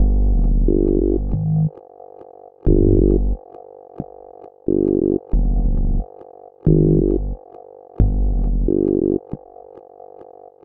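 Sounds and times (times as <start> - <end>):
melted plastic bass pulse: 0.0 - 1.7, 2.7 - 3.4, 4.8 - 6.1, 6.7 - 7.4, 8.0 - 9.2.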